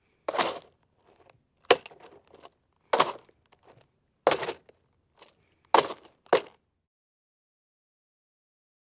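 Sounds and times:
footsteps on gravel with spurs: 0.3 - 6.6.

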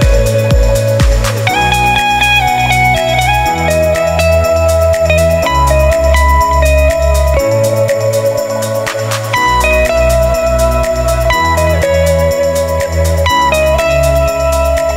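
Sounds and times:
chillout music: 0.0 - 14.9.

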